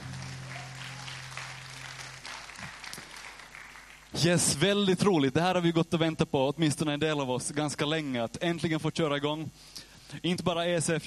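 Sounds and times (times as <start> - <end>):
audience applause: 0.0 - 4.2
speech: 4.1 - 11.0.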